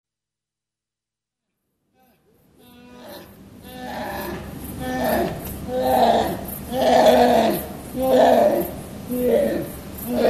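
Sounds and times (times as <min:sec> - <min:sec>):
brown bear giving harsh bleating calls: 0:02.0 - 0:10.2.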